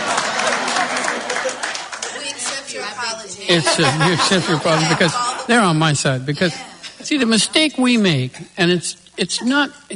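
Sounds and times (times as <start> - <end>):
laughter: 0.0 - 2.4, 3.4 - 5.8, 6.4 - 8.6
people in a room clapping: 0.0 - 3.2
speech: 3.5 - 9.9.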